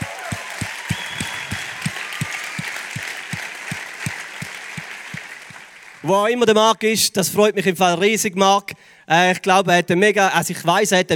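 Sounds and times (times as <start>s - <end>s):
audience applause: 0.0s - 6.2s
speech: 6.0s - 11.1s.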